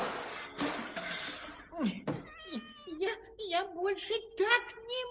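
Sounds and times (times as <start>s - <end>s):
loud crash: 0.0s - 1.5s
cat meowing: 2.2s - 3.0s
speech: 4.0s - 4.7s.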